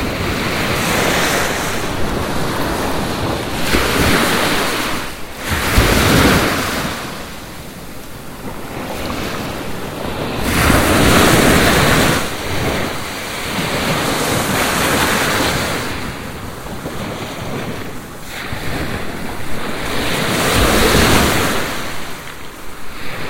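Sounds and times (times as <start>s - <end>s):
ocean waves: 0.0s - 23.2s.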